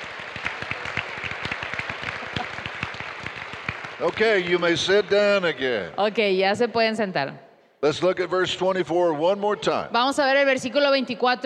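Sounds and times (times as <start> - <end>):
audience clapping: 0.0 - 5.9
speech: 4.0 - 11.4.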